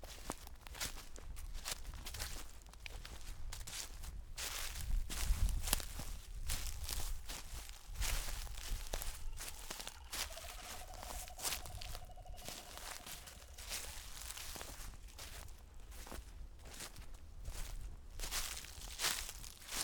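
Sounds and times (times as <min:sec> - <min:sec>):
footsteps on crunchy leaves: 0:00.1 - 0:19.8.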